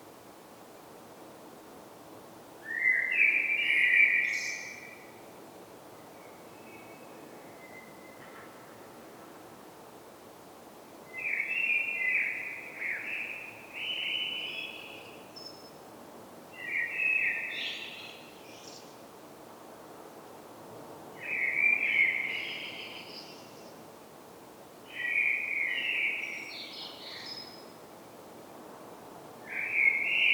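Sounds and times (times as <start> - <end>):
Common blackbird song: 2.7 - 5.0, 11.1 - 15.7, 16.6 - 19.0, 21.2 - 23.8, 24.9 - 27.7, 29.5 - 30.3.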